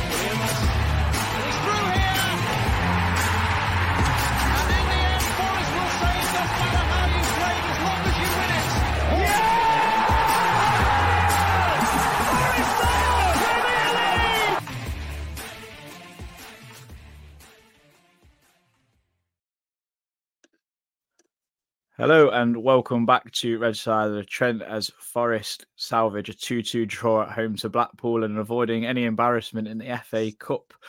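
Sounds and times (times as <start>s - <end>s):
football crowd cheering a Forest goal at home to Blackpool in FA Cup: 0.0s - 14.7s
speech: 22.0s - 30.8s.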